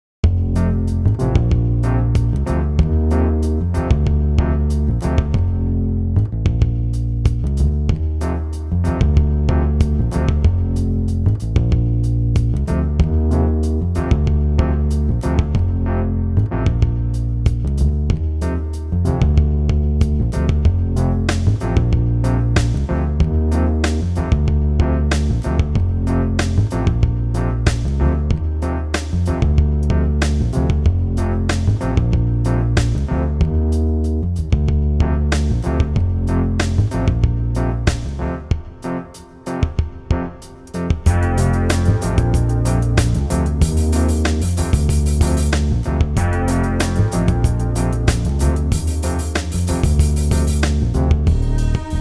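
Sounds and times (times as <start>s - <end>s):
music beat: 0.2s - 51.9s.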